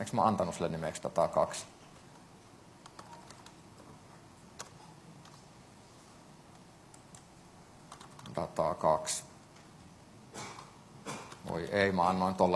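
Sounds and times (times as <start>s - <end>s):
speech: 0.0s - 1.8s, 11.6s - 12.5s
typing on a computer keyboard: 2.8s - 3.6s, 4.6s - 5.4s, 7.9s - 8.4s.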